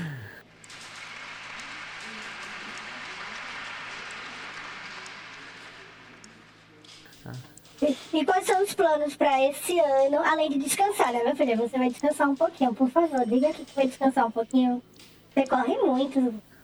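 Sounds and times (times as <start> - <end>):
audience applause: 0.0 - 6.5
speech: 7.2 - 16.5.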